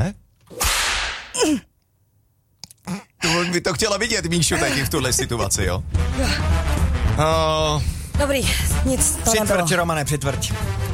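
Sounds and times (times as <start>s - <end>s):
whip lash: 0.5s - 1.4s
speech: 1.4s - 1.7s, 2.9s - 10.9s.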